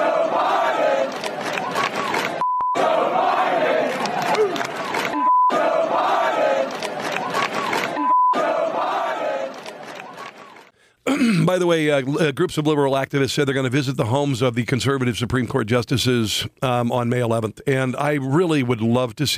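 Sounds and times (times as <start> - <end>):
crowd chanting: 0.0 - 10.7
speech: 11.6 - 19.3.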